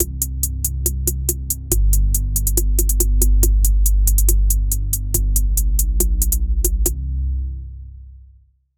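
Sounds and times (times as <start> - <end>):
dark atmospheric music: 0.0 - 8.1.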